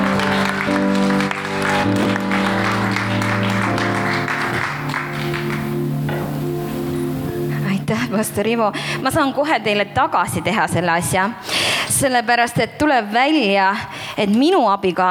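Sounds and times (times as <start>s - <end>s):
audience applause: 0.0s - 7.0s
sustained music: 0.0s - 10.8s
speech: 8.1s - 15.1s.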